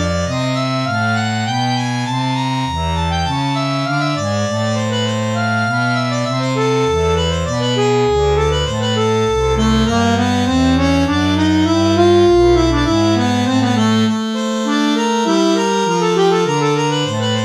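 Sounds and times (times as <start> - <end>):
MicrOrgan closed reeds: 0.0 - 17.4.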